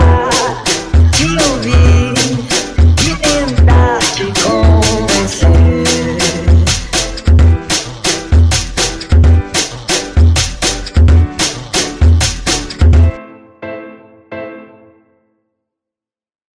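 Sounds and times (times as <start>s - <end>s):
funk house music: 0.0s - 13.2s.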